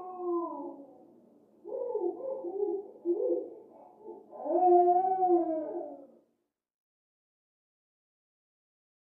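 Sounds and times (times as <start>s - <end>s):
baby crying down a hallway: 0.0s - 1.0s, 1.8s - 6.1s.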